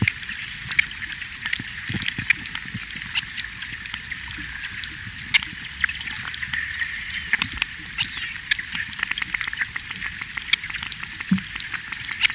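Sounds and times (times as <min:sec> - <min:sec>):
fish sounds underwater in northern Germany: 0:00.0 - 0:12.3.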